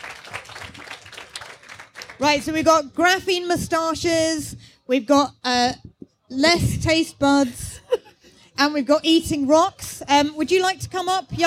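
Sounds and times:
audience applause: 0:00.0 - 0:02.2
speech: 0:02.2 - 0:07.8, 0:08.6 - 0:11.4.

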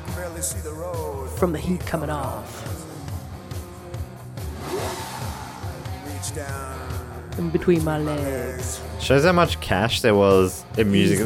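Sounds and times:
speech: 0:00.4 - 0:02.8, 0:06.3 - 0:11.2
car engine revving: 0:02.6 - 0:08.6.

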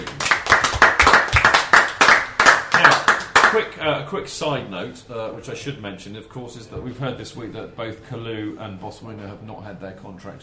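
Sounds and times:
round of applause: 0:00.0 - 0:03.6
speech: 0:03.6 - 0:10.4.

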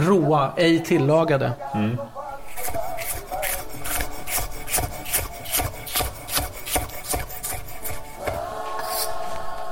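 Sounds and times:
speech: 0:00.0 - 0:02.2
knife thinly slicing raw artichoke: 0:02.5 - 0:09.5.

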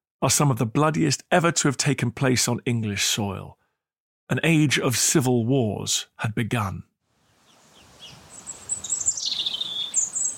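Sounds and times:
speech: 0:00.2 - 0:03.6, 0:04.3 - 0:06.9
thin high bird chirps: 0:07.2 - 0:10.3
wind rustling oak leaves in the trees: 0:07.2 - 0:10.3.

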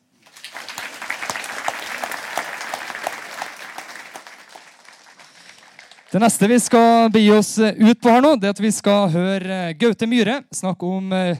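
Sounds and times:
audience applause: 0:00.2 - 0:06.9
speech: 0:06.1 - 0:11.3.

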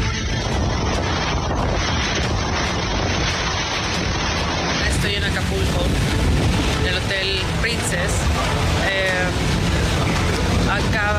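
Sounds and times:
heavy hurricane rain and storm in Acapulco: 0:00.0 - 0:11.1.

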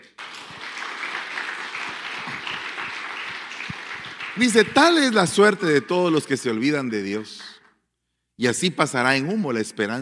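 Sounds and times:
audience applause: 0:00.0 - 0:07.6
speech: 0:04.4 - 0:07.4, 0:08.4 - 0:10.0.

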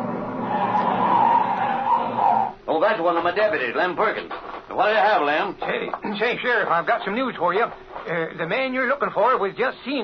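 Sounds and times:
car pulling up with tires skidding: 0:00.0 - 0:02.6
speech: 0:02.8 - 0:10.0.

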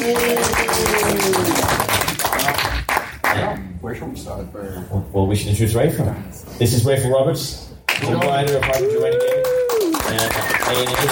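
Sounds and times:
audience applause: 0:00.0 - 0:03.4, 0:08.0 - 0:11.1
speech: 0:04.3 - 0:11.1.

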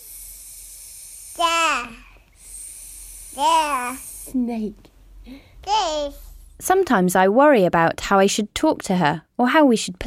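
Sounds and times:
steady hiss: 0:00.0 - 0:06.8
toddler babbling: 0:01.4 - 0:02.1, 0:03.4 - 0:04.0, 0:05.6 - 0:06.2
speech: 0:03.4 - 0:10.0.

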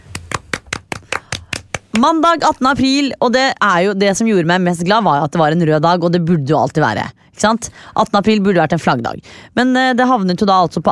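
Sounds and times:
hand clapping: 0:00.0 - 0:02.6
speech: 0:02.0 - 0:10.9.

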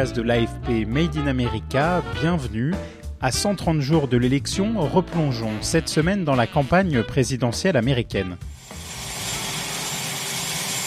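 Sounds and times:
speech: 0:00.0 - 0:08.6
helicopter landing on a lawn in darkness: 0:08.8 - 0:10.8.

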